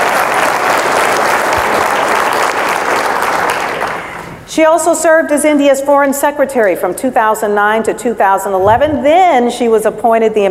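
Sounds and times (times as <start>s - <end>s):
audience applause: 0.0s - 4.3s
speech: 4.6s - 10.5s.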